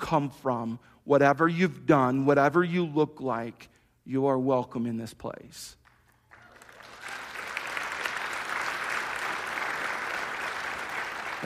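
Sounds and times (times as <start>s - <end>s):
speech: 0.0s - 5.8s
audience applauding: 6.1s - 11.4s.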